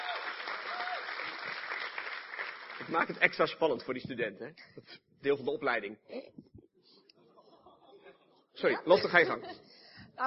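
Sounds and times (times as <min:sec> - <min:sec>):
audience applause welcoming a student speaker at a school event: 0:00.0 - 0:03.4
speech: 0:02.8 - 0:06.4, 0:08.6 - 0:09.6
laughter: 0:07.2 - 0:09.7.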